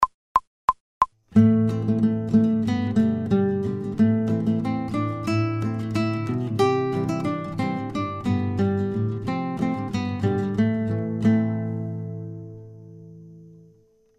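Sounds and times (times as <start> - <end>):
fast guitar folk tune without metronome: 1.3 - 13.2.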